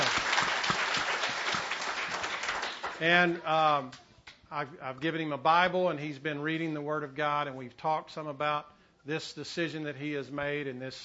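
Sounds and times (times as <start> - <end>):
church congregation clapping during a service: 0.0 - 4.4
speech: 3.0 - 11.0.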